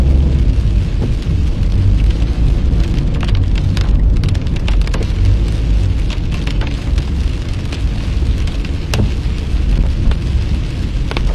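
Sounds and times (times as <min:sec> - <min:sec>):
car driving along a country road: 0:00.0 - 0:11.3
rain pattering on a car: 0:00.0 - 0:11.3.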